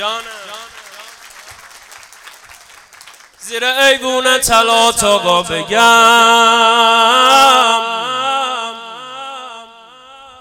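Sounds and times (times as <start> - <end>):
audience clapping at a Persian-language music gathering: 0.0 - 3.7
speech: 3.5 - 8.1.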